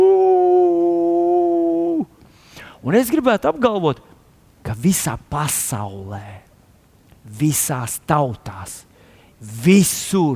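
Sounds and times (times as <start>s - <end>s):
imitated wolf howl: 0.0s - 2.1s
speech: 2.8s - 4.1s, 4.8s - 6.5s, 7.3s - 10.3s.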